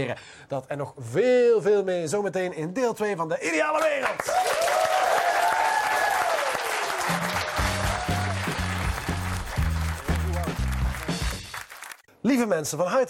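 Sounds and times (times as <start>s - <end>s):
speech: 0.0s - 4.8s, 12.2s - 13.0s
enthusiastic audience applause: 4.1s - 12.0s.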